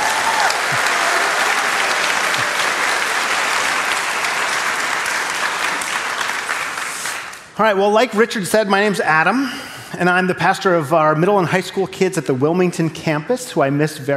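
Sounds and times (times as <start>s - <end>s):
room full of people clapping: 0.0s - 7.6s
speech: 7.6s - 14.1s.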